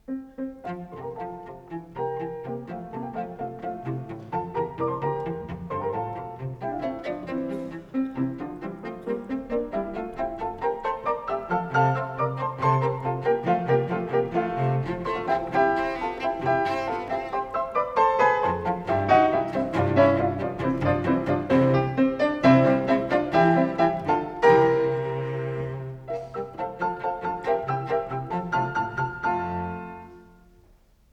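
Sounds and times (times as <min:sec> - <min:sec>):
cello piece in F major: 0:00.0 - 0:30.7.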